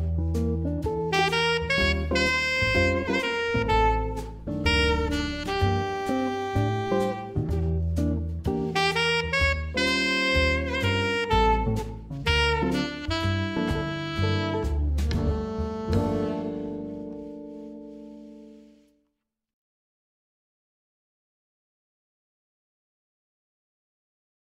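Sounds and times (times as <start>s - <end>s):
alto saxophone: 1.0s - 19.0s.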